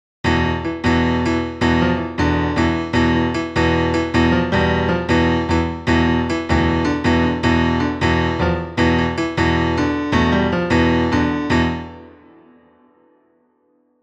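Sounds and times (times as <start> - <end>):
Phrygian mode music: 0.3 - 12.1.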